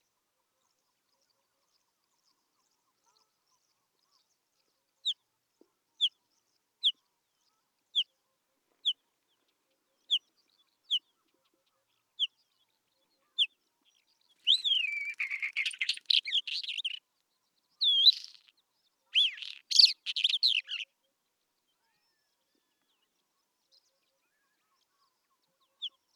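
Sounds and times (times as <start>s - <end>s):
Isabelline Wheatear song: 0.0s - 26.1s
Isabelline Wheatear calls: 14.4s - 17.0s, 17.8s - 18.5s, 19.1s - 20.9s.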